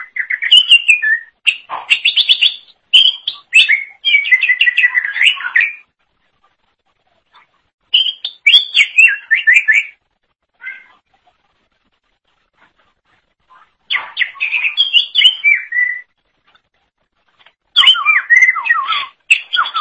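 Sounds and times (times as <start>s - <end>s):
Leafbird singing: 0.0s - 5.9s, 7.9s - 10.0s, 13.9s - 16.1s, 17.8s - 19.8s.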